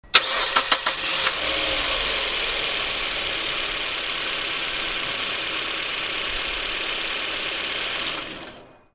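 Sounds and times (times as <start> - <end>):
car engine: 0.0 - 8.9.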